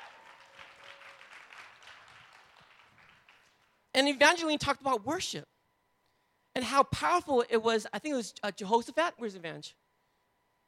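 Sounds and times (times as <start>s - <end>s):
audience applause: 0.0s - 3.7s
speech: 4.0s - 5.5s, 6.7s - 9.8s.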